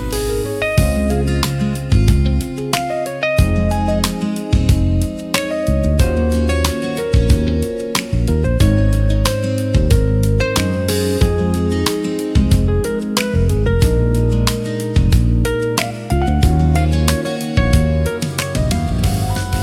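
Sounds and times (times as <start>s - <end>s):
easy listening music: 0.0s - 19.6s.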